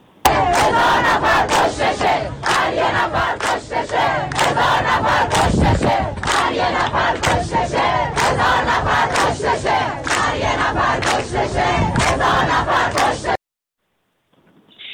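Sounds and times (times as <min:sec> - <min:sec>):
mourners' protest crowd chanting slogans: 0:00.2 - 0:13.4.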